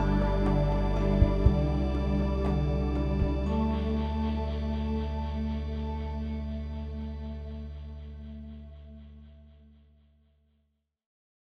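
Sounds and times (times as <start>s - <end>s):
spooky video game music: 0.0s - 7.1s.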